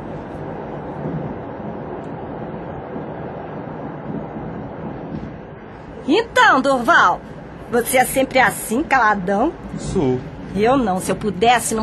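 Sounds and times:
train underway rumbling: 0.0s - 11.8s
speech: 6.1s - 11.8s.

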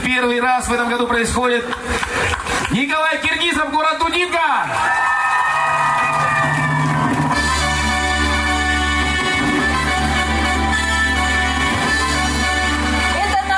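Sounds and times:
speech: 0.1s - 5.4s
audience clapping and cheering for a prize winner at an award presentation: 1.6s - 3.2s, 4.5s - 13.5s
loud music with a deep sustained bass: 6.8s - 13.5s.

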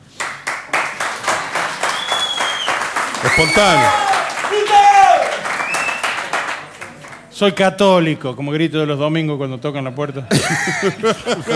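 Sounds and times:
hand clapping: 0.0s - 7.2s
speech: 3.2s - 4.0s, 7.4s - 11.5s
laughter: 10.3s - 11.5s.

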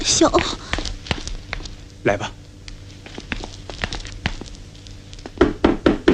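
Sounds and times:
speech: 0.2s - 0.7s, 2.1s - 2.4s
knocking on a door: 5.4s - 6.1s.

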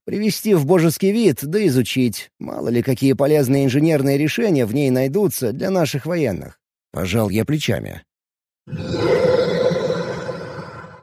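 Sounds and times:
speech: 0.1s - 8.1s, 8.7s - 9.3s
happy two-metre-tall furry creature roaring: 8.7s - 11.0s.

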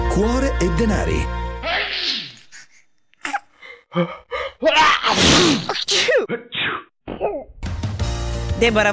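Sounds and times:
speech: 0.2s - 1.4s, 4.0s - 6.8s, 8.6s - 8.9s
person sneezing: 1.7s - 3.6s, 4.7s - 7.4s.

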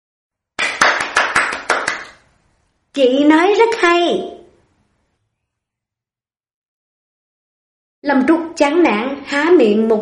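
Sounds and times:
hand clapping: 0.6s - 2.3s
speech: 3.0s - 4.4s, 8.1s - 9.9s.

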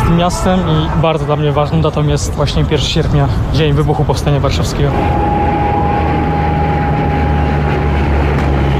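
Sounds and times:
speech: 0.1s - 5.5s
military aircraft flying overhead: 1.8s - 8.7s.

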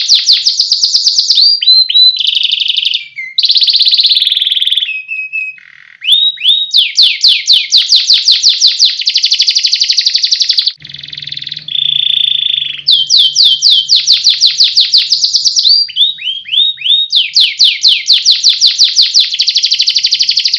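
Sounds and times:
competition canary singing: 0.0s - 20.5s.

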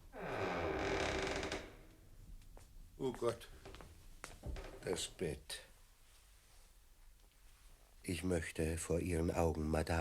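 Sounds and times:
door creaking open: 0.0s - 2.0s
speech: 3.0s - 3.6s, 4.8s - 5.7s, 8.0s - 9.9s.

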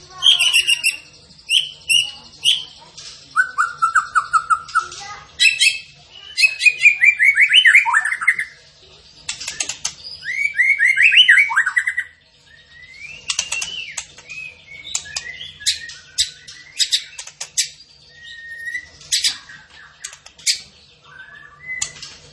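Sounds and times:
zebra finch song: 0.0s - 22.3s.

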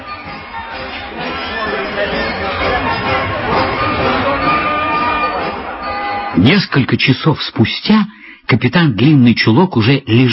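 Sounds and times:
crowd cheering and shouting: 0.0s - 6.9s
speech: 6.4s - 10.3s.

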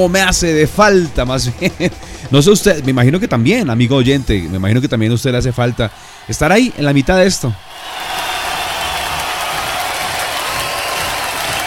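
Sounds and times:
speech: 0.0s - 8.1s
big concert crowd applauding and cheering: 5.0s - 11.6s.

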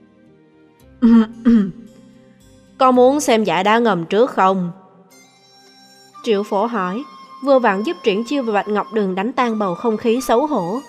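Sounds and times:
speech: 1.0s - 1.7s, 2.8s - 4.8s, 6.2s - 10.8s
single cough: 1.0s - 1.8s.

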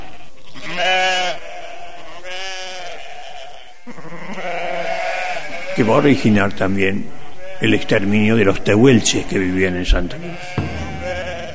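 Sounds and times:
sheep bleating: 0.0s - 11.5s
speech: 5.8s - 10.6s.

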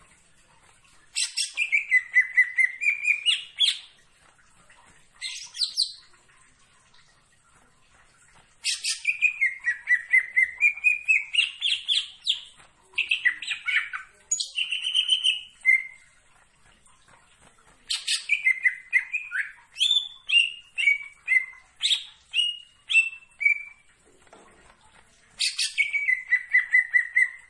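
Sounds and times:
leafbird singing varied whistles and chattering notes: 1.2s - 3.9s, 8.6s - 16.1s, 17.9s - 23.9s, 25.4s - 27.4s.

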